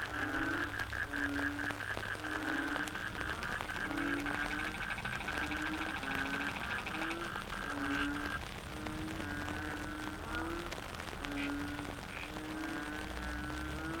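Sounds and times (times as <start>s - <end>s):
frogs calling in a dense chorus: 0.0s - 13.9s.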